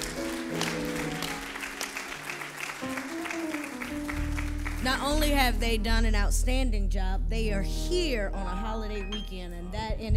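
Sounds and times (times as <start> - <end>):
audience applause: 0.0 - 5.2
speech: 4.8 - 10.1.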